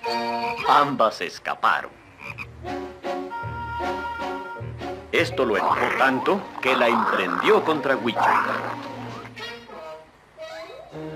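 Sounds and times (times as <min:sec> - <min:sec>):
two frogs croaking: 0:00.3 - 0:00.8, 0:02.0 - 0:02.5, 0:05.4 - 0:09.1
speech: 0:00.7 - 0:02.0, 0:02.6 - 0:02.8, 0:05.2 - 0:08.9.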